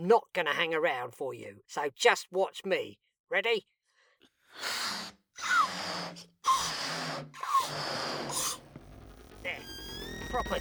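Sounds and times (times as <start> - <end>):
speech: 0.0 - 3.8, 4.5 - 8.7, 9.4 - 10.5
balloon being blown up: 4.7 - 10.5.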